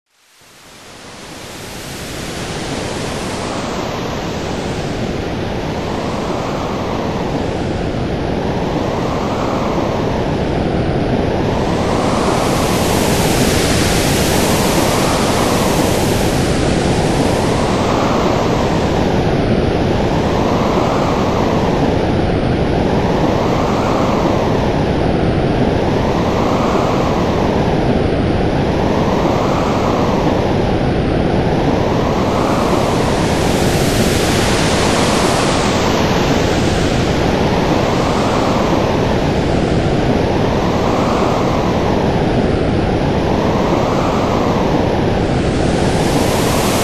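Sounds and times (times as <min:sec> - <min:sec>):
wind: 0:00.2 - 0:46.8.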